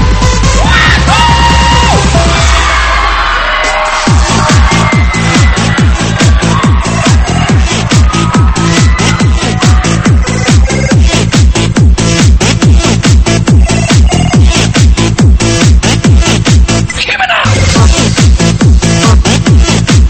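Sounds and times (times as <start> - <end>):
loud steady thumping dance beat: 0.0 - 20.0
crowd screaming, yelling and whooping: 0.4 - 11.5.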